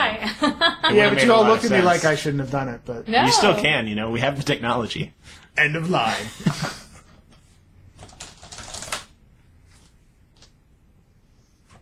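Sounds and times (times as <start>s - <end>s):
speech: 0.4s - 6.8s
password typed on a computer keyboard: 8.0s - 9.1s.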